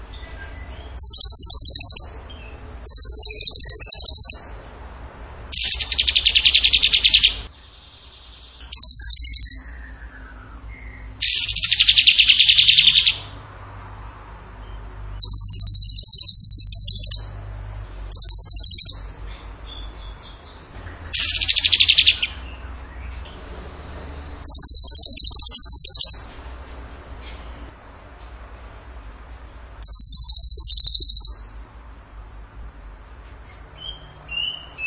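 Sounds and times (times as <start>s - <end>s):
bird singing high trills: 0.1s - 4.6s, 5.5s - 13.4s, 14.7s - 17.5s, 18.1s - 23.2s, 24.4s - 26.4s, 29.8s - 31.6s, 33.8s - 34.8s.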